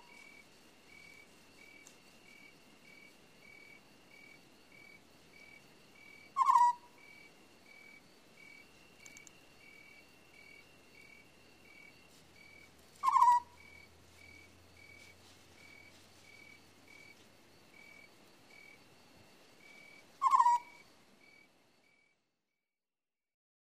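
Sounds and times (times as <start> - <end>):
owl screeching: 6.4 - 6.9, 13.0 - 13.6, 20.2 - 20.8.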